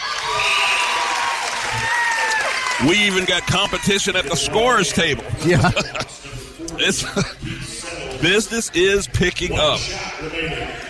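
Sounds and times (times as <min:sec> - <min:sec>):
applause: 0:00.0 - 0:03.6
basketball crowd cheering: 0:00.0 - 0:05.4
speech: 0:02.8 - 0:10.8
laughter: 0:03.2 - 0:08.1.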